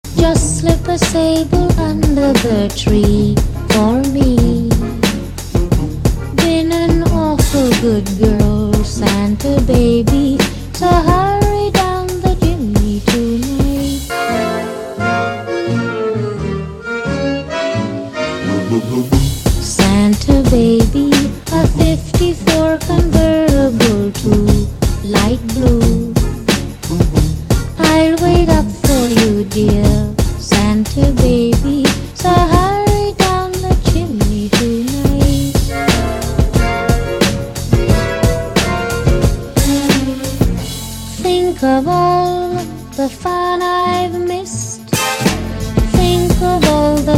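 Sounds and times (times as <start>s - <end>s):
classic Christmas music: 0.0s - 47.1s.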